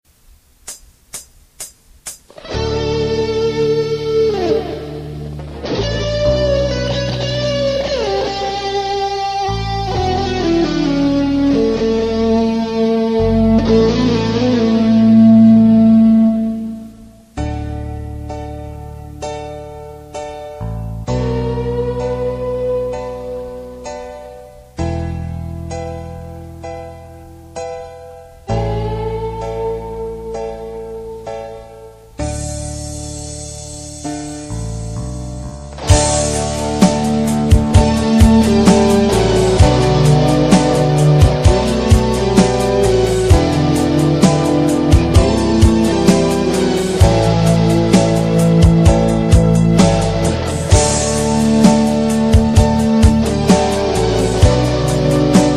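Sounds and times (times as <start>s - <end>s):
instrumental guitar: 0.7s - 55.5s.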